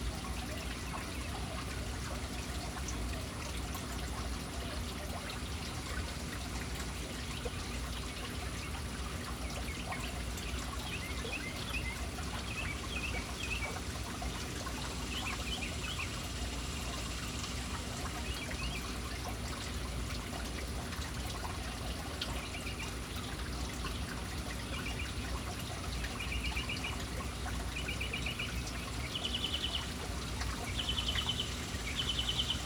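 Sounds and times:
splashing fountain water: 0.0s - 32.6s
birds chirping: 9.5s - 19.0s, 26.0s - 32.6s.

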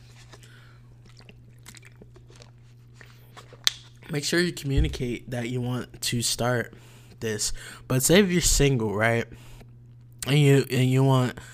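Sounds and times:
low electrical hum: 0.0s - 11.5s
person drinking water: 0.3s - 3.6s
speech: 4.1s - 9.5s, 10.2s - 11.5s.

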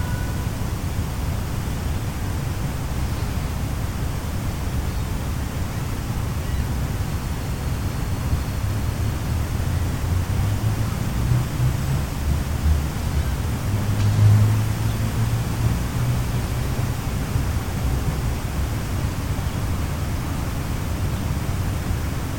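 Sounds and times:
city noise rumble: 0.0s - 22.3s.

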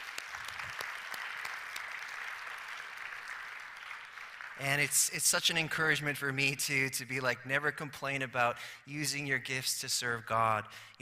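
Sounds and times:
church congregation applauding volunteers: 0.0s - 6.0s
speech: 4.6s - 11.0s.

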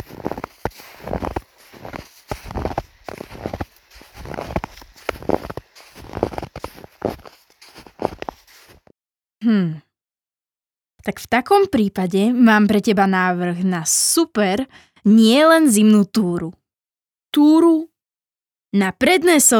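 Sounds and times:
footsteps creaking and crunching on Tatra mountain snow: 0.0s - 8.9s
speech: 11.3s - 16.6s, 17.3s - 17.9s, 18.7s - 19.5s.

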